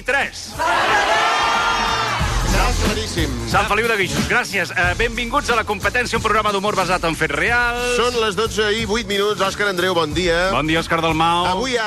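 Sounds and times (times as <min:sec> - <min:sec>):
speech: 0:00.0 - 0:01.0, 0:02.6 - 0:11.8
studio audience shouting their home towns all at once: 0:00.5 - 0:02.5.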